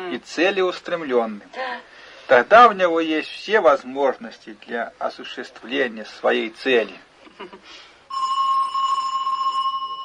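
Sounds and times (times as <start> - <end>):
speech: 0.1 - 8.4
electric doorbell trilling: 8.1 - 10.0.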